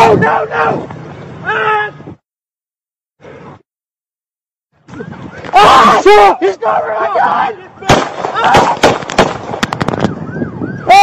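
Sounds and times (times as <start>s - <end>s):
people shouting: 0.0s - 2.0s, 5.5s - 8.9s, 10.9s - 11.0s
speech: 0.2s - 2.1s, 5.0s - 7.6s, 8.4s - 8.9s
gunshots from a Cook County Sheriff's officer shooting a man: 7.9s - 10.0s.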